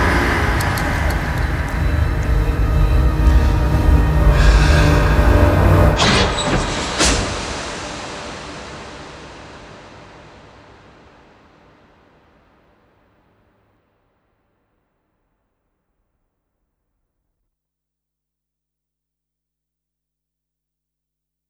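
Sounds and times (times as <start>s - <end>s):
dark cinematic sound effects: 0.0s - 11.6s.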